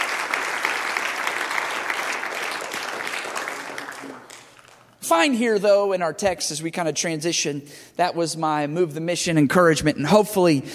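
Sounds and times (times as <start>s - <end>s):
audience clapping in praise: 0.0s - 5.0s
speech: 5.1s - 10.7s.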